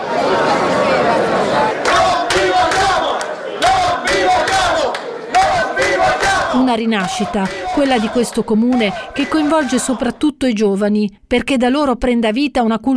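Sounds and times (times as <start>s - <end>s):
protest march crowd chanting: 0.0s - 10.2s
speech: 6.7s - 12.9s.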